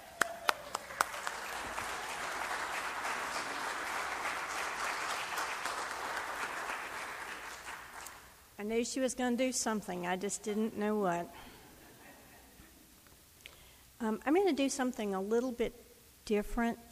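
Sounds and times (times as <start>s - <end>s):
audience applause greeting a speaker: 0.0s - 8.3s
speech: 8.6s - 11.5s, 14.1s - 16.9s.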